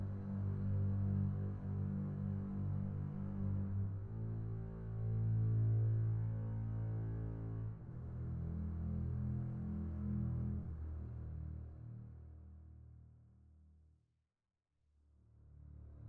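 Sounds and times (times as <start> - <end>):
double bass strings: 0.0 - 12.5.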